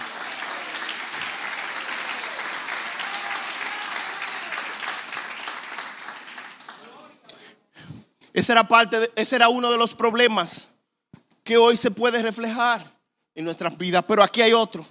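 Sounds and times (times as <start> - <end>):
audience applause: 0.0 - 7.2
speech: 8.4 - 10.7, 11.5 - 14.8.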